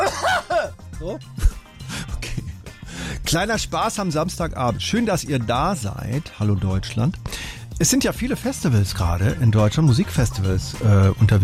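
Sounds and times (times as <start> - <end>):
exaggerated coughing into the microphone: 0.0 - 1.6
speech: 1.0 - 1.4, 3.3 - 11.4.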